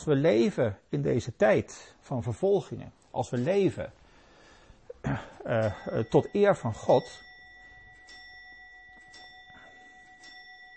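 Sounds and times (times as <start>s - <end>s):
speech: 0.0s - 4.0s, 5.0s - 7.2s
clock chiming: 5.5s - 10.7s.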